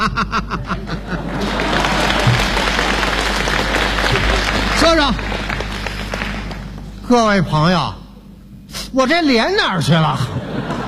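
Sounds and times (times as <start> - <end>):
audience laughter at a comedy stage show: 0.0 - 4.8, 10.2 - 10.8
speech: 0.1 - 1.0, 4.8 - 5.3, 7.1 - 8.0, 8.9 - 10.3
audience applause at a comedy stage show: 1.0 - 7.4.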